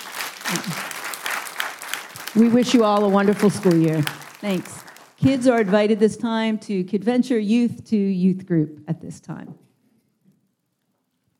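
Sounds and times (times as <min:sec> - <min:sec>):
round of applause: 0:00.0 - 0:05.8
speech: 0:00.5 - 0:01.0, 0:02.3 - 0:09.6.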